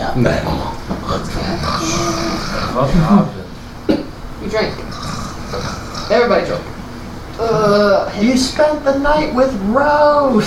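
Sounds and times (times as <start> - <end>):
speech: 0.2 - 1.5, 2.8 - 3.4, 4.4 - 6.7, 7.4 - 10.4
person imitating loud obnoxious snoring with pig-like snorts: 1.2 - 2.9, 4.9 - 6.2.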